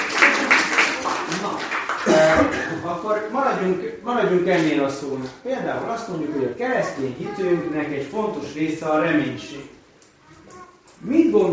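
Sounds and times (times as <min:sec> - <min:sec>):
audience applause for word game contestants at a Christian community gathering: 0:00.0 - 0:02.6
speech: 0:02.4 - 0:09.8, 0:11.0 - 0:11.5.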